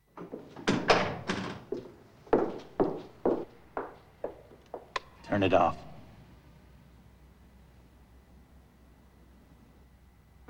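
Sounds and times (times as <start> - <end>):
front door opening: 0.0 - 5.4
speech: 5.3 - 5.9.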